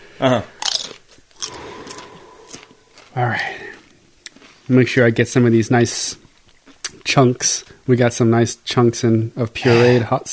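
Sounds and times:
speech: 0.2s - 0.6s, 3.2s - 3.5s, 4.7s - 6.2s, 7.1s - 10.3s
crunching a dry chip: 0.6s - 4.7s.

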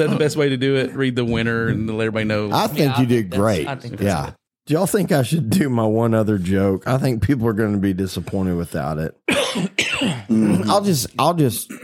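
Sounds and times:
speech: 0.0s - 11.8s
person coughing into the microphone: 9.3s - 10.8s, 11.6s - 11.8s.

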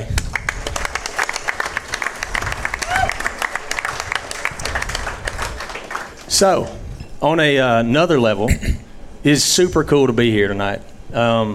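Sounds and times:
live audience applause: 0.2s - 6.6s
audience cheers and voices: 2.4s - 3.6s
speech: 6.4s - 11.5s.

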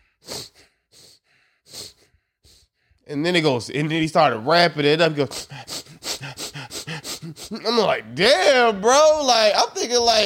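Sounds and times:
voice imitating slow, low, heavy breathing: 0.0s - 2.7s, 5.2s - 8.0s
speech: 3.1s - 5.7s, 7.4s - 10.2s.

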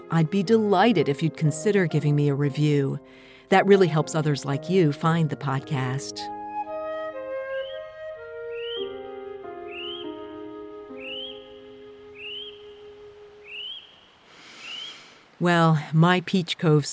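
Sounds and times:
speech: 0.1s - 6.4s, 15.4s - 16.9s
kiwi whistling and hooting at night: 6.6s - 15.1s.

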